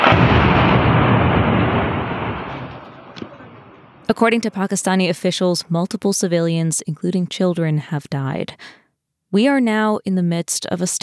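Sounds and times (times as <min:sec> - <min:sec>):
bombs exploding near Muzaffarabad: 0:00.0 - 0:04.1
speech: 0:04.1 - 0:11.0.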